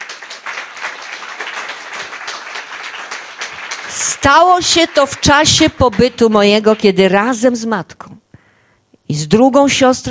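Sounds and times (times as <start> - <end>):
crowd applause: 0.0 - 6.8
speech: 4.0 - 8.2, 9.1 - 10.1.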